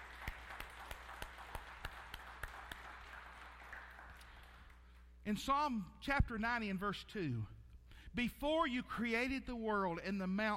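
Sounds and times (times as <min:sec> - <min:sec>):
audience clapping: 0:00.0 - 0:05.2
speech: 0:05.3 - 0:07.5, 0:08.1 - 0:10.5.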